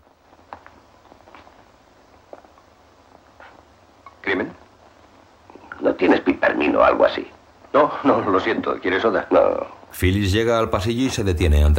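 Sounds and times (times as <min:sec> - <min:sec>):
footsteps of a man walking through a house in a radio drama: 0:00.0 - 0:05.2
low hiss: 0:00.0 - 0:11.7
speech: 0:04.4 - 0:04.6, 0:06.0 - 0:11.7.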